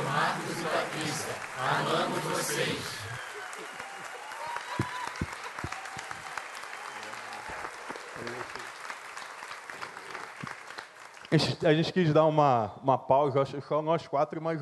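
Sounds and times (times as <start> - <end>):
audience applause: 0.0 - 11.8
speech: 11.3 - 14.6.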